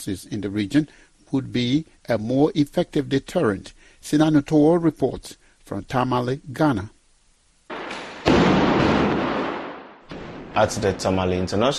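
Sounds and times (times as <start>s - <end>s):
speech: 0.0s - 7.0s, 10.6s - 11.7s
gunfire: 7.7s - 10.8s.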